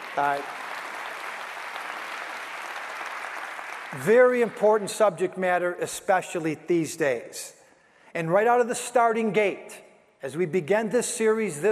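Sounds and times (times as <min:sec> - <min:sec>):
audience applause: 0:00.0 - 0:04.6
speech: 0:00.2 - 0:00.6, 0:03.9 - 0:11.7.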